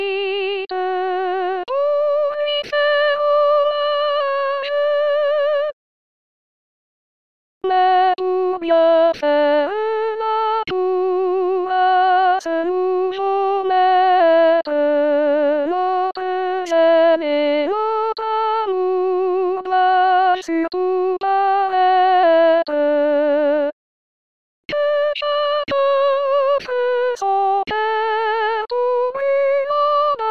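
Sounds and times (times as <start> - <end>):
soprano voice: 0.0 - 5.8, 7.6 - 23.7, 24.7 - 30.2.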